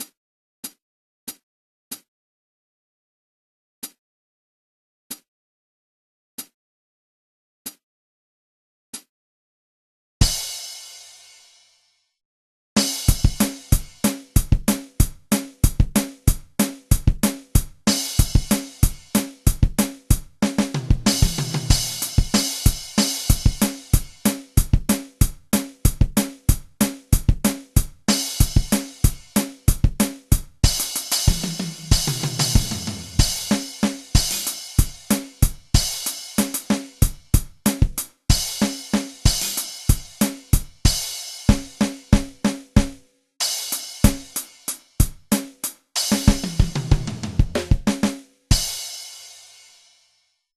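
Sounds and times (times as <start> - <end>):
drum: 10.2 - 11.5, 12.8 - 49.9.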